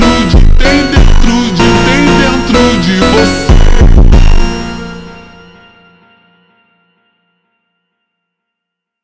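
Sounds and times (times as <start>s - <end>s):
slowed automotivo phonk music with reverb: 0.0s - 6.2s.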